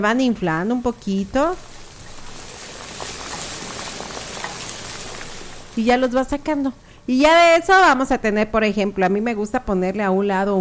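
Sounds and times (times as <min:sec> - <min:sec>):
speech: 0:00.0 - 0:01.7, 0:05.8 - 0:10.5
food frying in hot oil in a pan: 0:00.0 - 0:06.8.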